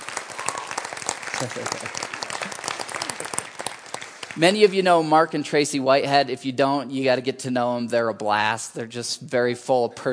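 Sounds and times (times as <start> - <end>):
crowd applause: 0.0 - 5.1
speech: 1.4 - 2.6, 4.4 - 10.1.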